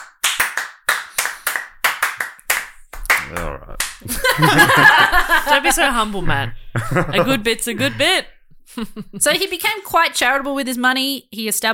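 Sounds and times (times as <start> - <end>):
person clapping hands: 0.0 - 4.1
laughter: 3.2 - 9.8
speech: 3.3 - 11.7.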